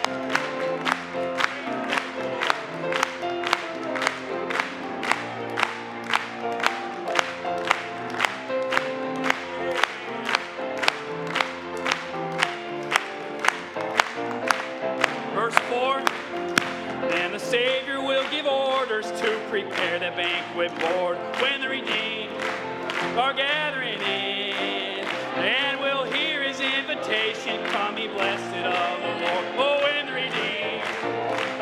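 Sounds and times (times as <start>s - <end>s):
audience clapping along to hymn: 0.0s - 31.5s.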